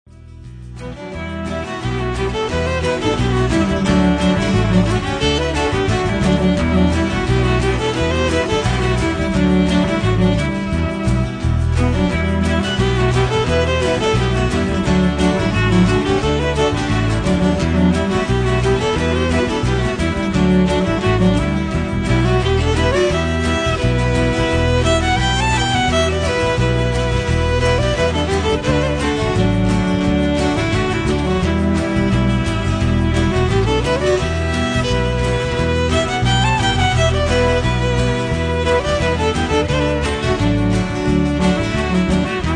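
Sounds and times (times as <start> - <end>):
cello: 0.2 - 42.5.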